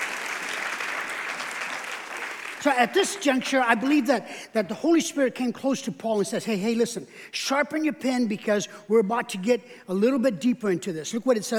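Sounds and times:
audience applause: 0.0s - 3.3s
speech: 2.6s - 11.5s.

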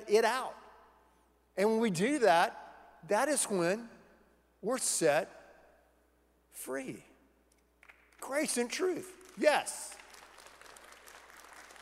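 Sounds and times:
speech: 0.1s - 0.6s, 1.6s - 4.0s, 4.6s - 5.4s, 6.6s - 7.1s, 8.2s - 10.0s
soft polite clapping from a small crowd: 7.8s - 8.4s, 9.1s - 11.7s.

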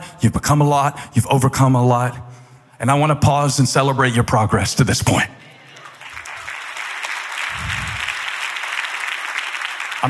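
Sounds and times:
speech: 0.2s - 5.4s
hesitant audience clapping: 5.7s - 10.0s.

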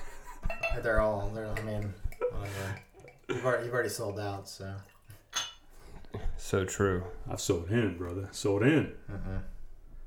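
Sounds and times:
glassware handled and clinking: 0.4s - 3.7s, 4.8s - 5.8s
speech: 0.8s - 4.9s, 6.1s - 9.5s.

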